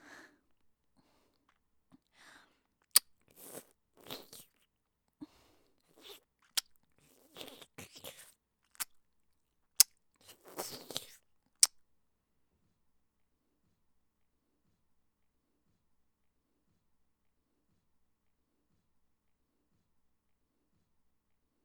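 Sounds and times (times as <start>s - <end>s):
ear licking on the right side: 2.8s - 4.6s, 5.8s - 8.9s, 10.2s - 11.2s.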